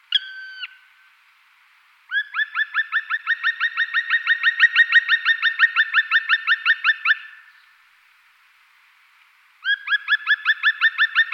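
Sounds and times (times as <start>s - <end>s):
black woodpecker ringing kwi notes: 0.1s - 0.8s, 2.1s - 7.6s, 9.6s - 11.3s.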